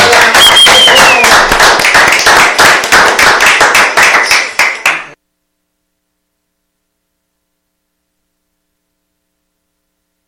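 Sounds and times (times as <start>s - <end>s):
studio audience clapping: 0.0s - 5.2s
high whistle: 0.1s - 1.5s.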